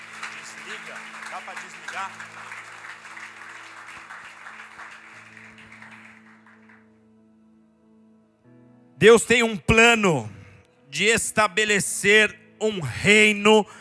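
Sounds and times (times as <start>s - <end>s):
audience applauding: 0.0s - 7.0s
speech: 0.8s - 2.8s, 9.0s - 13.7s.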